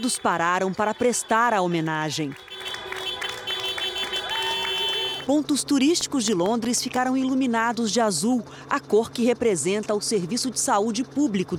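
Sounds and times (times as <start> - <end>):
speech: 0.0 - 2.8, 5.3 - 11.5
crowd applauding health workers: 1.8 - 5.3.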